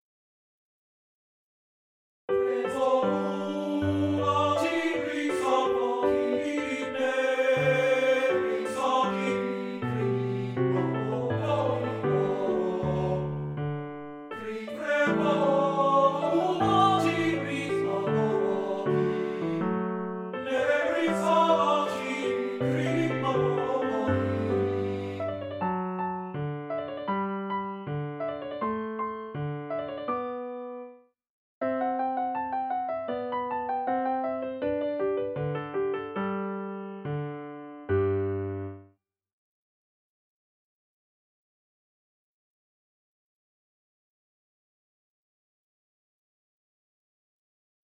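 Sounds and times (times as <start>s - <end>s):
art song for voice and piano: 2.3s - 38.9s.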